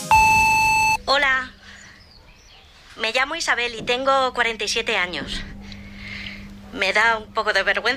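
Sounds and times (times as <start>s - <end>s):
answering machine high beep: 0.1s - 1.0s
speech: 3.4s - 5.5s, 6.7s - 7.9s.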